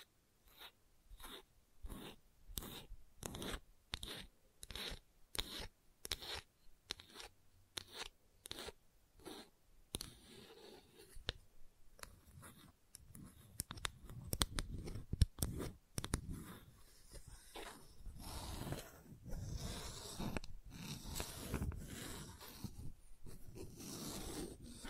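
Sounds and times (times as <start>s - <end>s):
scratching strokes: 0.4s - 11.3s, 12.0s - 24.8s.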